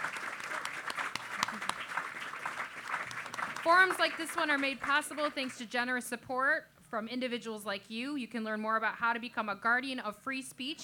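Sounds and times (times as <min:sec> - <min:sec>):
audience applause: 0:00.0 - 0:05.6
speech: 0:03.6 - 0:10.8.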